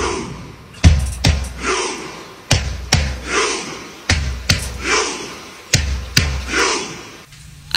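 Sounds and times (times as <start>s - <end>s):
football supporters' rhythmic chant: 0.0s - 7.3s.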